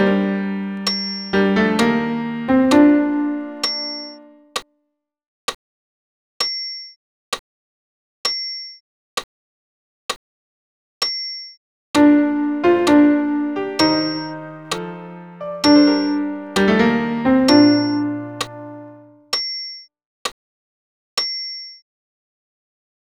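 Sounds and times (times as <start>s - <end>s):
piano accompaniment: 0.0s - 4.4s, 12.0s - 19.2s.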